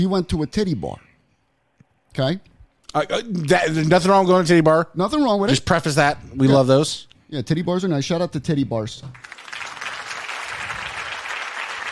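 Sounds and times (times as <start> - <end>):
speech: 0.0 - 1.0, 2.1 - 9.3
clapping: 9.1 - 11.9.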